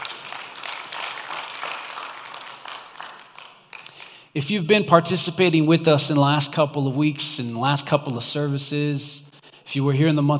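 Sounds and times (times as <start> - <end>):
audience applause: 0.0 - 4.2
speech: 4.4 - 10.3.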